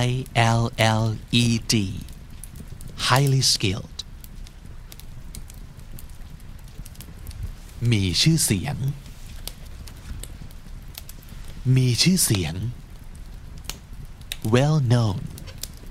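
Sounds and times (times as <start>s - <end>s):
speech: 0.0s - 2.1s, 3.0s - 3.9s, 7.8s - 9.0s, 11.6s - 12.8s, 14.4s - 15.3s
fireplace fire crackling: 0.0s - 15.8s.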